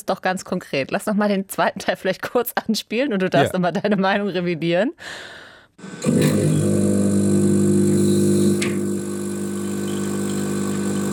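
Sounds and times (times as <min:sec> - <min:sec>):
speech: 0:00.0 - 0:07.1
coffee machine running in a lab: 0:05.8 - 0:11.1.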